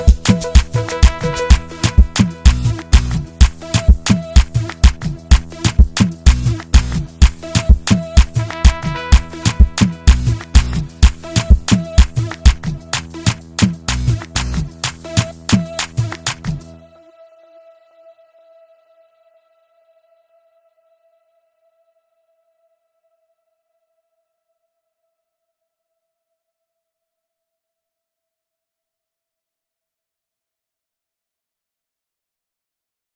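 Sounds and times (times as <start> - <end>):
African drums: 0.0 - 16.6
Azeri bass music: 0.0 - 16.9.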